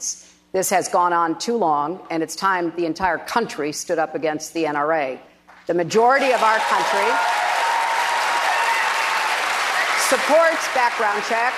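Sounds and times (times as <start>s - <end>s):
speech: 0.0s - 7.4s, 10.2s - 11.5s
audience applause at a televised political debate: 6.3s - 11.5s.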